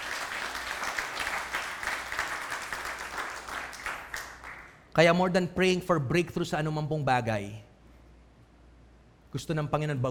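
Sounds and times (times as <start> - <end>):
church congregation applauding at a worship service: 0.0 - 4.8
speech: 5.0 - 7.7, 9.3 - 10.1.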